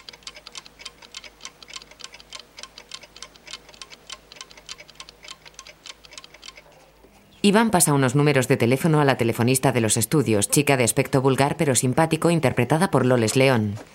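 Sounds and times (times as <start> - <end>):
alarm clocks ticking beside a bed: 0.0 - 6.7
speech: 7.4 - 13.9.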